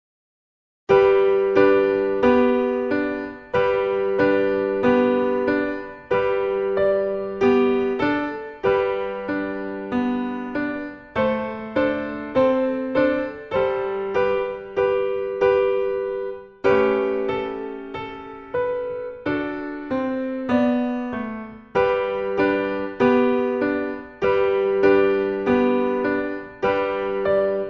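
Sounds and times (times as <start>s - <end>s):
Christmas song: 0.9s - 27.6s.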